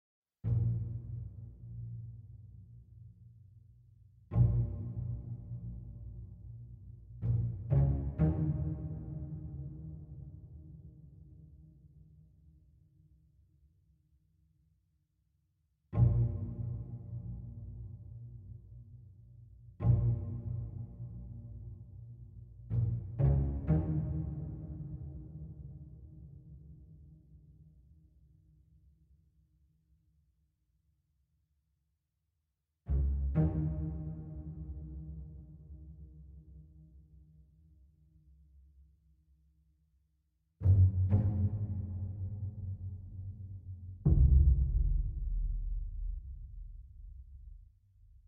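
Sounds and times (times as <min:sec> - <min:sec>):
string instrument: 0:00.4 - 0:13.2, 0:15.9 - 0:27.9, 0:32.9 - 0:37.8, 0:40.6 - 0:47.4.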